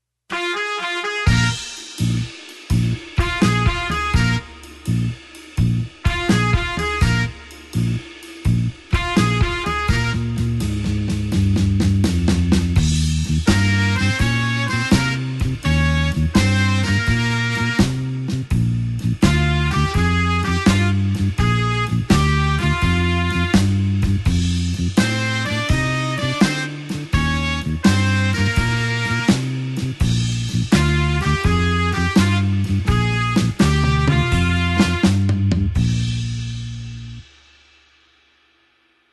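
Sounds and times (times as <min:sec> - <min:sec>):
blues horns shuffle in B flat: 0:00.3 - 0:37.5.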